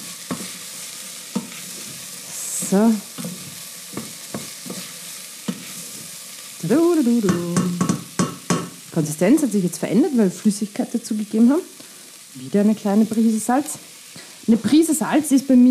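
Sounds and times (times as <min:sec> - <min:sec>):
stirring and scraping food in a pan: 0:00.0 - 0:06.6
speech: 0:02.7 - 0:03.3, 0:06.6 - 0:07.8, 0:09.0 - 0:11.8, 0:12.4 - 0:13.9, 0:14.5 - 0:15.7.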